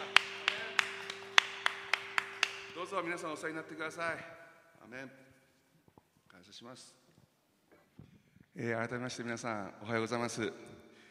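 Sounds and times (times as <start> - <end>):
audience clapping: 0.0 - 3.6
speech: 2.9 - 5.2, 6.4 - 7.0, 8.6 - 10.7.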